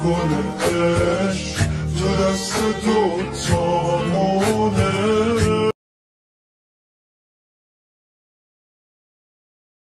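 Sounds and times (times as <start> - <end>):
Iranian music: 0.0 - 5.8.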